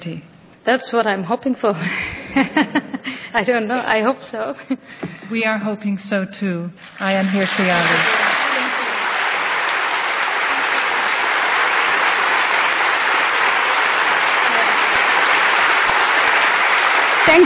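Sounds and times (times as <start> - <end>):
speech: 0.0 - 8.3, 17.3 - 17.4
large crowd applause: 7.2 - 17.4.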